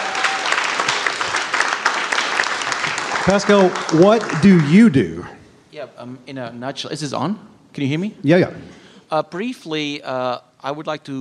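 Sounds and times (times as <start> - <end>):
audience applause: 0.0 - 5.0
speech: 3.2 - 11.1.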